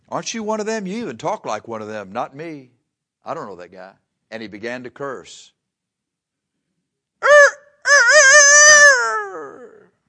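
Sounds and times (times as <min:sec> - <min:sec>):
speech: 0:00.1 - 0:05.6
rooster crowing: 0:07.2 - 0:09.8.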